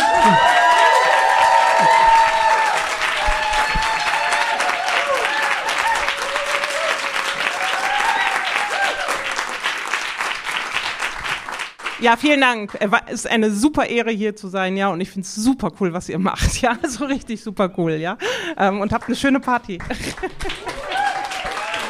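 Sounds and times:
audience cheers: 0:00.0 - 0:09.8, 0:20.5 - 0:21.8
audience clapping: 0:00.0 - 0:12.8, 0:18.9 - 0:21.8
speech: 0:12.0 - 0:20.8.

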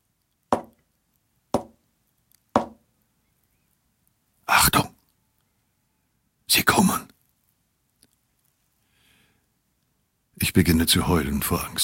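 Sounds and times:
soft knocks on a wall: 0:00.6 - 0:00.8, 0:01.6 - 0:01.8, 0:02.6 - 0:02.8
speech: 0:10.4 - 0:11.8.

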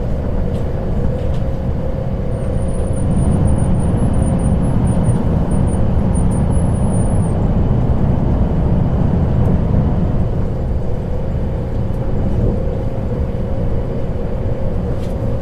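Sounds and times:
train travelling through the night: 0:00.0 - 0:15.4
high squeal: 0:02.4 - 0:07.4.

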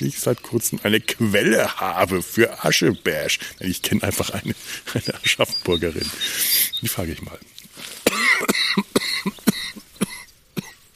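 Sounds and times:
speech: 0:00.0 - 0:08.0
raspy breaths: 0:03.3 - 0:03.6, 0:04.5 - 0:05.2, 0:06.0 - 0:06.8
coughing fit: 0:08.0 - 0:10.8.

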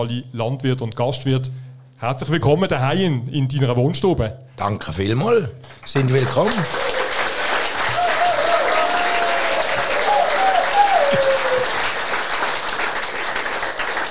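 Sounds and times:
speech: 0:00.0 - 0:06.9
audience applause at a talk show: 0:05.7 - 0:14.0.

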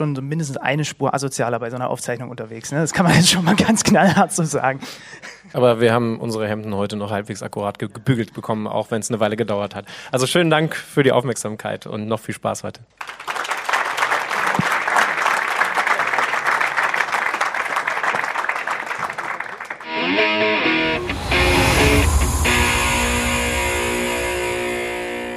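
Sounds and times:
speech: 0:00.0 - 0:13.2
warm audience applause: 0:13.0 - 0:21.1
music with sustained tones: 0:19.8 - 0:25.3.

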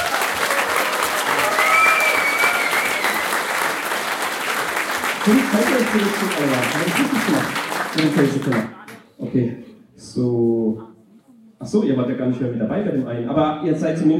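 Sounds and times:
audience applause: 0:00.0 - 0:08.9
speech: 0:05.3 - 0:10.9, 0:11.6 - 0:14.1.

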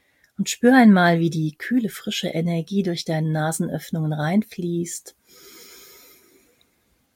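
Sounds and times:
speech: 0:00.4 - 0:05.5
breathy exhale through slightly parted lips during a guided breathing exercise: 0:05.2 - 0:06.6.

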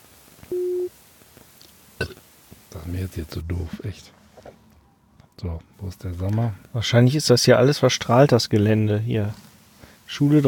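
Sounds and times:
phone line tone while calling a mobile: 0:00.5 - 0:00.9
speech: 0:02.9 - 0:04.2, 0:05.4 - 0:09.5, 0:10.1 - 0:10.4.

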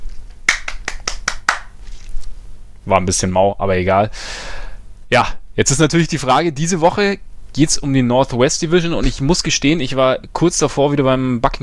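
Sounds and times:
hand claps from a lone clapper: 0:00.4 - 0:01.8
speech: 0:02.8 - 0:11.6.

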